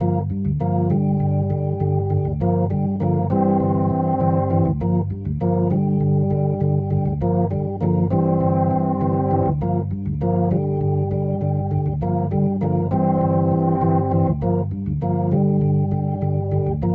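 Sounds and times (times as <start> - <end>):
rotor organ riff: 0.0 - 16.9.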